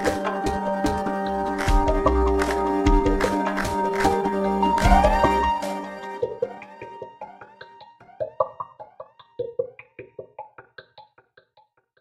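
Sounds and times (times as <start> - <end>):
slow music: 0.0 - 9.6.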